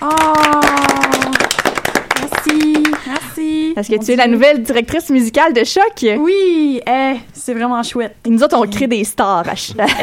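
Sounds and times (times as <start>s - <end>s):
group applause: 0.0s - 3.5s
speech: 3.8s - 10.0s
laughter: 9.8s - 10.0s.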